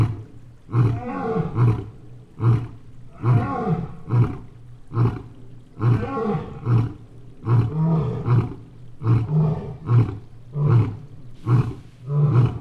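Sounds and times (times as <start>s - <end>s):
stream flowing: 0.0s - 12.6s
lions roaring at a zoo: 0.7s - 12.6s.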